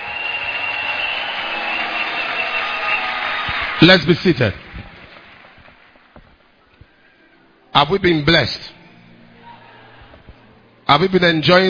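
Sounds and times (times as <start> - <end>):
audience clapping: 0.0 - 6.6
speech: 3.8 - 4.6, 7.8 - 8.8, 10.9 - 11.6.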